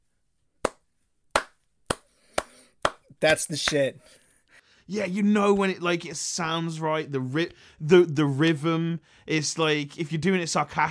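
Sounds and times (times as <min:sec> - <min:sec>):
slow hand clapping: 0:00.6 - 0:03.0
speech: 0:03.2 - 0:04.2, 0:04.9 - 0:10.8.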